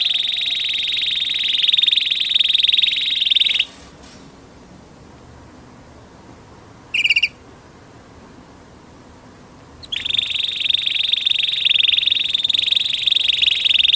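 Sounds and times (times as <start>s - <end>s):
canary singing: 0.0s - 3.8s, 6.9s - 7.4s, 9.8s - 13.9s.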